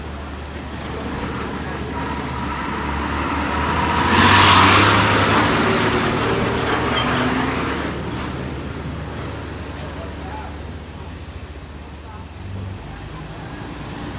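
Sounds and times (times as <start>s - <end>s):
Bangkok street ambience: 0.0s - 14.1s.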